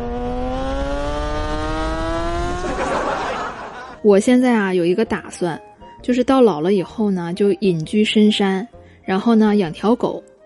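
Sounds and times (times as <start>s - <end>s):
Ferrari sports car engine revving: 0.0s - 3.2s
laughter: 2.6s - 4.0s
speech: 4.0s - 10.3s.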